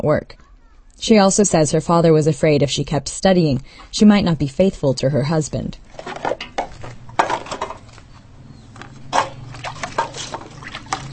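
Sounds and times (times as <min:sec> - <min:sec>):
speech: 0:00.0 - 0:00.4, 0:01.0 - 0:06.2
washing pots and spoons with water from buckets in a yard: 0:05.8 - 0:11.1.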